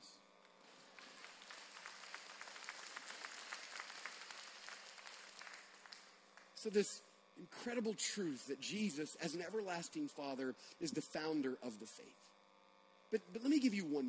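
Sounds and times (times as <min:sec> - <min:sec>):
audience applause: 0:00.7 - 0:06.5
speech: 0:06.6 - 0:12.4, 0:13.1 - 0:14.0.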